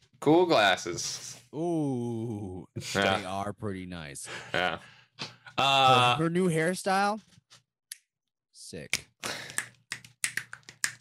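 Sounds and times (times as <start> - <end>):
speech: 0.2 - 7.4, 8.7 - 9.5
hand clapping: 8.9 - 10.9.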